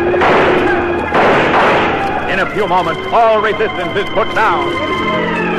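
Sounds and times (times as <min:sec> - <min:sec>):
gunfire from several guns: 0:00.0 - 0:03.2
speech: 0:02.6 - 0:05.5.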